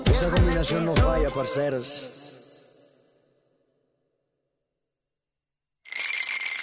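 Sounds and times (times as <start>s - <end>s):
speech: 0.2s - 2.3s
ice cubes rattling: 5.9s - 6.6s.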